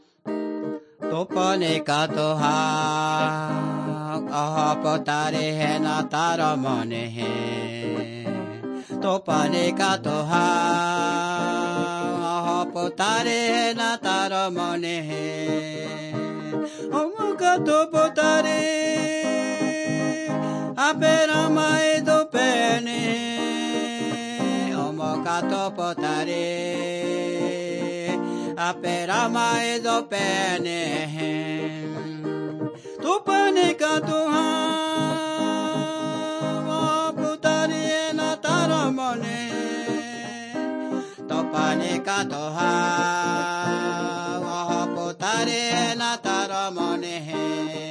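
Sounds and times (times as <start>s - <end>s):
person singing to God: 0.3s - 47.8s.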